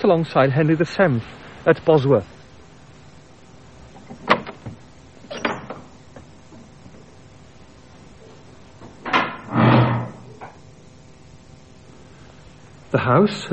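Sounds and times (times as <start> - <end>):
speech: 0.0 - 2.4, 13.1 - 13.5
door shutting thud: 9.0 - 10.2.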